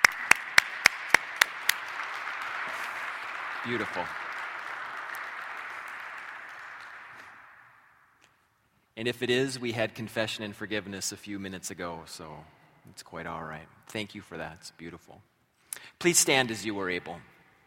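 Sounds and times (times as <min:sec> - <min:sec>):
audience clapping: 0:00.0 - 0:08.2
speech: 0:03.6 - 0:04.2, 0:09.0 - 0:15.3, 0:16.0 - 0:17.3.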